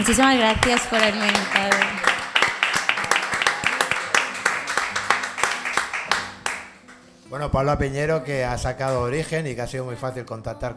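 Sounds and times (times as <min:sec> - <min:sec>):
speech: 0:00.0 - 0:02.1, 0:07.3 - 0:10.7
audience applause: 0:00.0 - 0:06.8.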